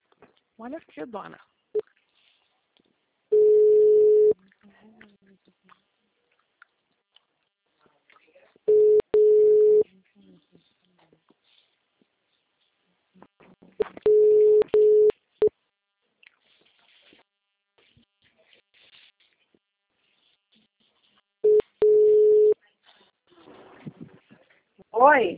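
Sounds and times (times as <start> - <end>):
speech: 0.6 - 1.8, 5.1 - 6.0
telephone busy tone after a dropped call: 3.3 - 4.4, 8.7 - 9.8, 14.1 - 15.1, 21.5 - 22.6.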